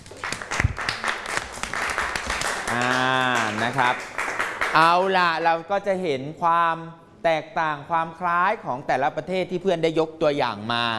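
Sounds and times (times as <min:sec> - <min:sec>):
classroom applause: 0:00.0 - 0:05.1
speech: 0:03.6 - 0:04.1, 0:04.7 - 0:10.9.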